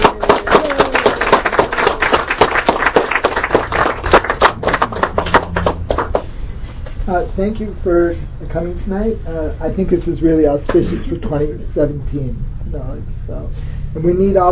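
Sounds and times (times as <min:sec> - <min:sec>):
audience applause: 0:00.0 - 0:06.4
speech: 0:07.4 - 0:14.5.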